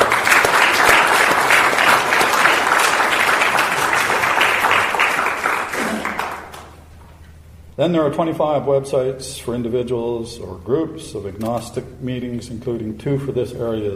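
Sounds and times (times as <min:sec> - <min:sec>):
audience applause: 0:00.0 - 0:06.8
speech: 0:07.8 - 0:13.9.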